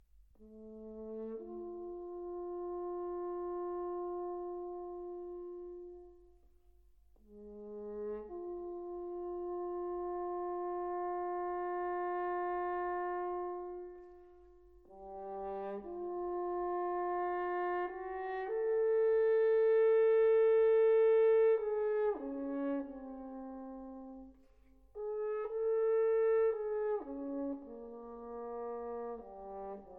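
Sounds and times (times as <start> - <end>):
brass quintet: 0.0 - 29.9.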